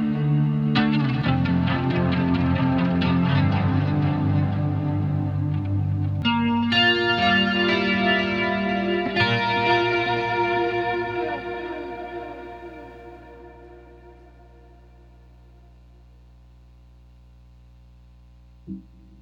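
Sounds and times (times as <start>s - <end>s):
clean electric guitar with delay and tube driver: 0.0s - 15.7s.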